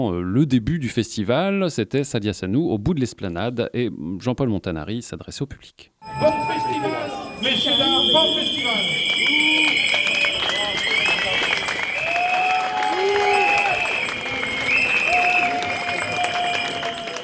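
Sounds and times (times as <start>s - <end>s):
speech: 0.0s - 9.6s
festival crowd booing: 6.0s - 17.2s.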